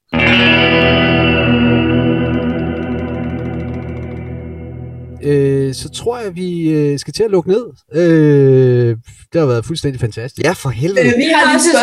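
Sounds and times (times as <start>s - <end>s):
fuzz-distorted electric guitar chord: 0.0s - 6.3s
speech: 5.2s - 11.8s.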